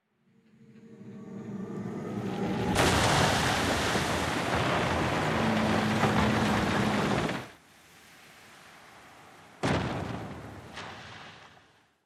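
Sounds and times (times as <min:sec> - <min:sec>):
ship appearing sound: 0:00.3 - 0:07.6.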